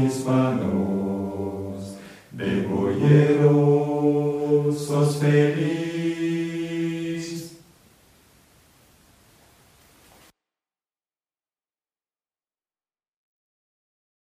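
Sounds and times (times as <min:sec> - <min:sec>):
men singing: 0:00.0 - 0:07.6.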